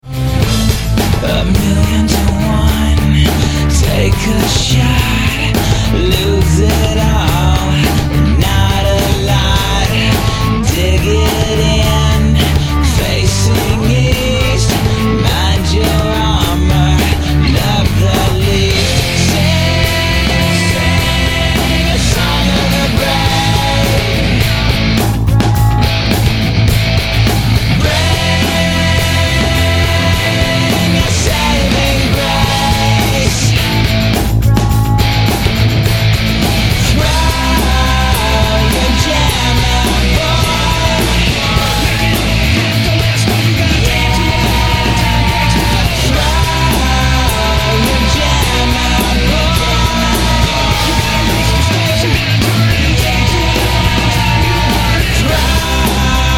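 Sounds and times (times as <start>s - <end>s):
guitar: 0.0s - 56.3s.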